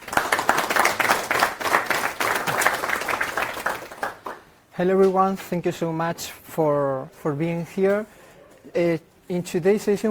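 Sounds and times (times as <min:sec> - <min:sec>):
crowd applauding: 0:00.0 - 0:04.5
speech: 0:04.8 - 0:10.0.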